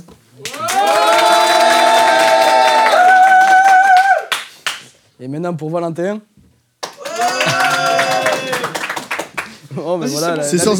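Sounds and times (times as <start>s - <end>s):
audience applause for a contestant: 0.4s - 4.8s, 6.8s - 9.6s
speech: 5.4s - 6.4s, 9.8s - 10.7s.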